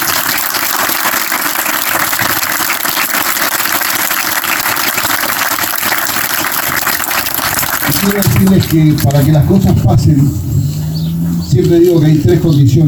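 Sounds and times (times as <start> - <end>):
audience applause for a group of young people at an event: 0.0 - 9.4
speech: 8.0 - 10.5, 11.6 - 12.8.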